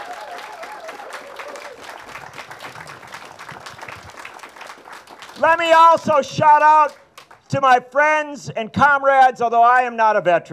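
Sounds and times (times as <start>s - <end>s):
audience applause: 0.0s - 6.2s
speech: 5.4s - 10.5s.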